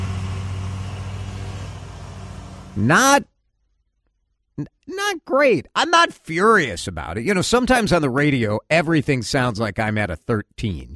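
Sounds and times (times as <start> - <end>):
riding lawnmower engine running: 0.0 - 3.2
speech: 2.8 - 3.3, 4.6 - 10.9.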